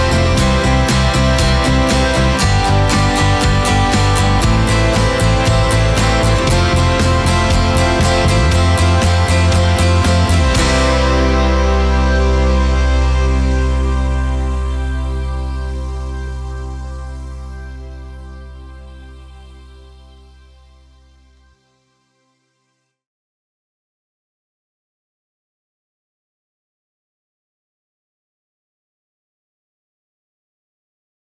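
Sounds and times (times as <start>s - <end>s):
ukulele: 0.0s - 15.6s.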